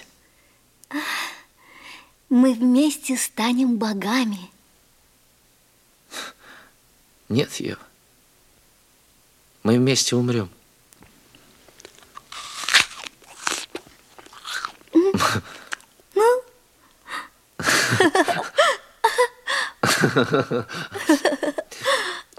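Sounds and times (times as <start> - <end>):
speech: 2.3 - 4.6, 7.3 - 7.9, 9.6 - 10.6, 20.2 - 21.6
crunchy bites and wet chewing of a fruit: 11.4 - 16.2
laughter: 17.6 - 21.7.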